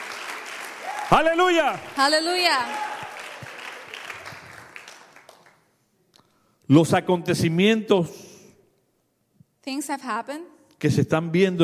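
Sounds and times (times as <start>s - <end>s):
audience applauding: 0.0s - 5.7s
speech: 1.1s - 2.9s, 6.7s - 8.2s, 9.6s - 11.6s.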